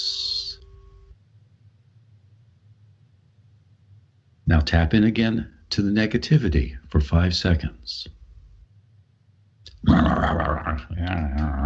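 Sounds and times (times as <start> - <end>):
speech: 4.5 - 8.2, 9.9 - 11.6
person growling imitating an animal's snarl: 9.7 - 11.6.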